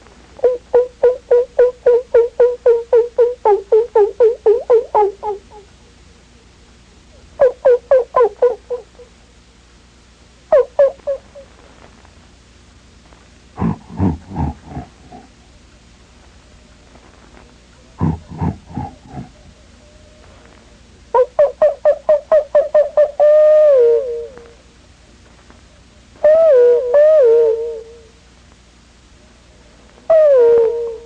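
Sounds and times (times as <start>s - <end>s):
low steady hiss of quiet bush ambience: 0.0s - 31.0s
wavering falling distant animal howls in the bush: 0.4s - 5.7s, 7.4s - 9.1s, 13.6s - 15.5s, 17.9s - 24.6s, 26.2s - 28.1s, 30.1s - 31.0s
distant animal barks or grunts in the bush: 0.4s - 6.0s, 7.2s - 9.2s, 10.5s - 11.6s, 13.6s - 15.6s, 17.8s - 20.5s, 21.1s - 24.6s, 26.2s - 28.1s, 30.1s - 31.0s.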